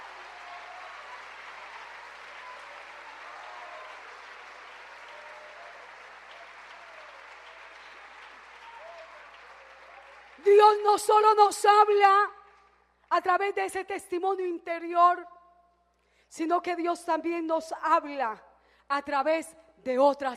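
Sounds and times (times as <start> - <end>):
audience applauding: 0.0 - 12.7
speech: 10.4 - 12.4, 13.1 - 15.3, 16.3 - 20.3.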